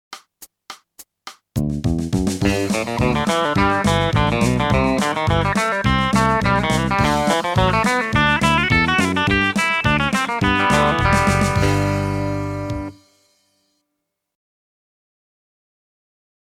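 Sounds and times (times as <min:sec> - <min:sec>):
country music: 0:02.2 - 0:13.2.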